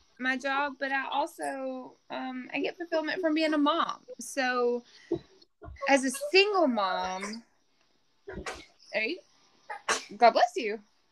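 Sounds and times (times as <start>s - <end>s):
speech: 0.2s - 7.5s, 8.3s - 9.3s, 9.9s - 10.9s
person sneezing: 8.3s - 8.8s, 9.7s - 10.2s.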